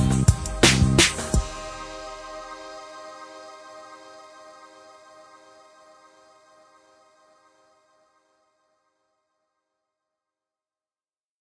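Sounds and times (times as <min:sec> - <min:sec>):
hip hop music: 0:00.0 - 0:08.3.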